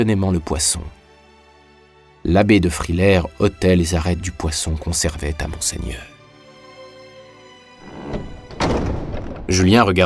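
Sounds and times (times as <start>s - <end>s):
speech: 0.0s - 1.0s, 2.2s - 6.1s, 9.5s - 10.0s
door bursting open with a crash: 7.8s - 9.8s.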